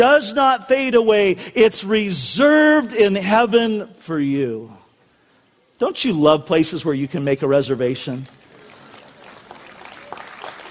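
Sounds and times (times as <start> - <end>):
speech: 0.0 - 4.8, 5.8 - 8.4
church congregation clapping: 8.1 - 10.7.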